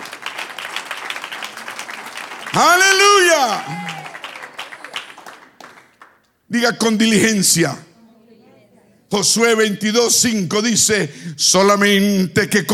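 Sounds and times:
crowd applauding: 0.0 - 6.3
speech: 2.5 - 3.8, 6.5 - 7.9, 9.1 - 12.7
person shouting: 2.6 - 4.6.

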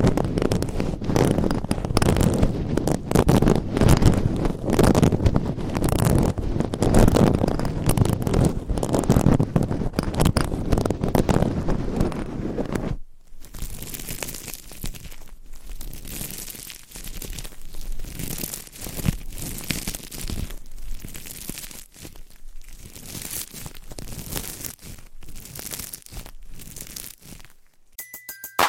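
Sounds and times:
scratching on a microphone: 0.0 - 27.9
tone: 28.0 - 28.6.

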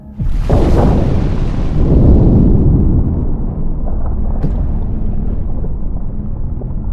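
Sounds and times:
heavy boom: 0.1 - 6.9
ocean floor shaking, deep rumbling roar: 0.2 - 6.9.

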